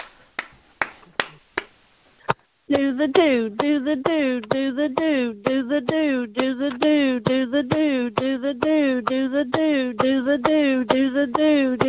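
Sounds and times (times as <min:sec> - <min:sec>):
hand claps: 0:00.0 - 0:01.8
speech: 0:02.7 - 0:11.8.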